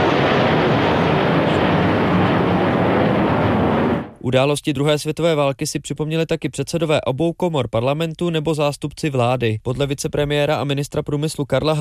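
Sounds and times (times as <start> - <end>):
five army aircraft flying over Vítkov: 0.0 - 4.2
speech: 4.3 - 11.8.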